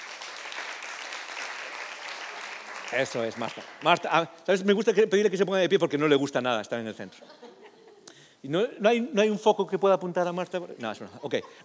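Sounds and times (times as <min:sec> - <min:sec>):
audience applause: 0:00.0 - 0:04.1
speech: 0:02.9 - 0:07.5, 0:08.4 - 0:11.6
laughter: 0:07.0 - 0:08.1.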